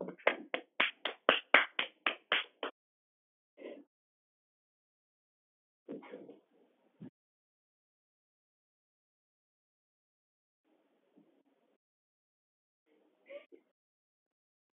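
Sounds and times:
hand claps as applause for a contestant: 0.0 - 2.8.

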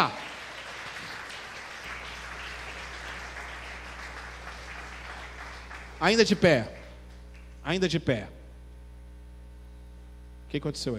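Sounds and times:
crowd applauding: 0.0 - 7.6
low hum: 1.8 - 10.9
speech: 6.0 - 6.8, 7.6 - 8.4, 10.5 - 10.9.

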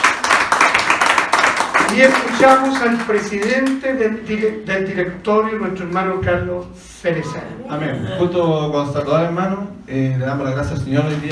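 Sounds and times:
audience applause: 0.0 - 3.8
speech: 1.9 - 11.3.

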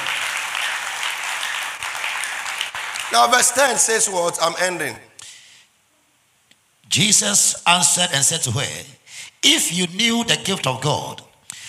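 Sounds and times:
audience clapping: 0.0 - 4.1
speech: 3.1 - 5.1, 6.9 - 11.3.

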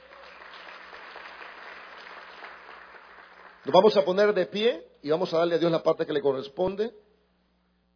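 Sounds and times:
audience applauding: 0.0 - 4.0
speech: 3.6 - 7.0.

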